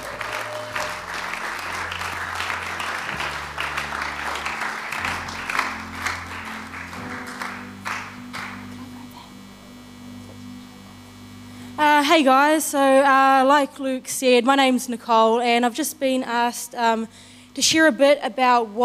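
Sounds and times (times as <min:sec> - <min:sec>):
audience cheering: 0:00.0 - 0:08.6
speech: 0:12.2 - 0:18.8.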